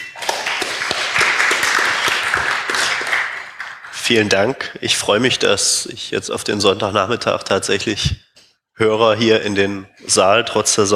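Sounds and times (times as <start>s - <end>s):
audience applause: 0.0s - 4.2s
speech: 4.1s - 8.2s, 8.8s - 10.9s.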